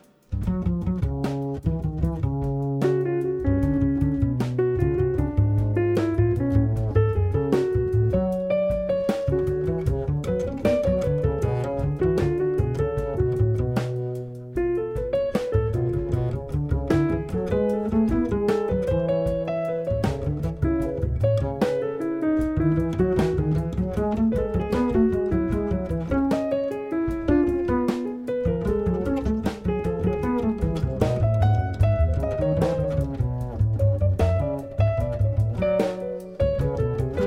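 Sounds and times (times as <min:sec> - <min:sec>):
nocturne in F sharp minor: 0:00.3 - 0:37.2.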